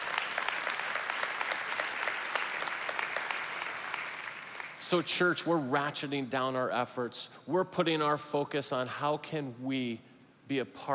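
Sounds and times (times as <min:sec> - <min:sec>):
audience applause: 0:00.0 - 0:04.8
speech: 0:04.9 - 0:10.9.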